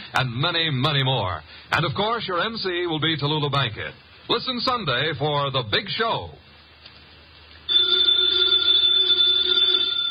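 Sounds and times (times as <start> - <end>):
speech: 0.1 - 6.4
telephone bell ringing: 7.7 - 10.1.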